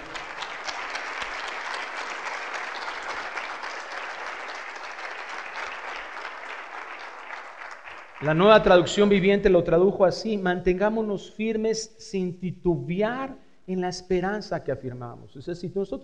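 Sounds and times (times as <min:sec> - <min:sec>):
audience applauding loudly: 0:00.0 - 0:09.1
speech: 0:08.2 - 0:16.0.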